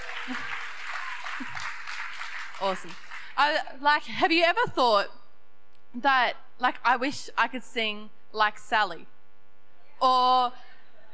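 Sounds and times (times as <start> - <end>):
round of applause: 0.0 - 3.4
speech: 0.3 - 0.5, 2.6 - 5.2, 5.9 - 9.1, 10.0 - 10.6.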